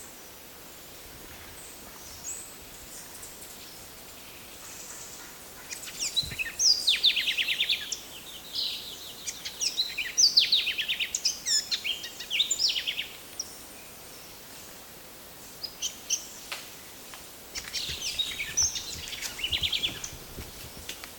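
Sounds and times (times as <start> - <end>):
wren singing: 2.0 - 13.5, 17.5 - 20.9.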